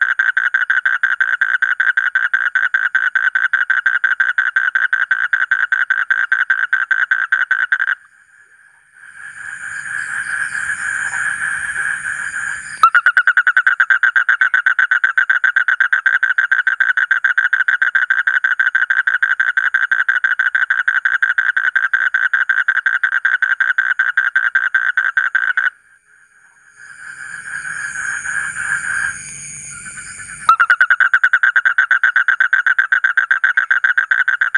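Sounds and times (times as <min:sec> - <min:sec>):
Asian common toad pulsed trill: 0:00.0 - 0:34.5
hiss and hum: 0:08.0 - 0:12.8, 0:25.9 - 0:31.2.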